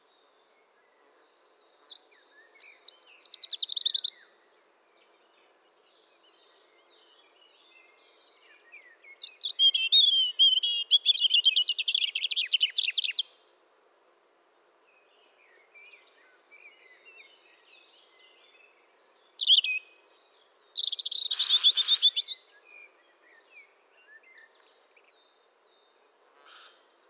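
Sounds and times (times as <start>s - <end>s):
European robin singing: 1.9s - 4.4s, 8.5s - 13.5s, 18.1s - 22.7s.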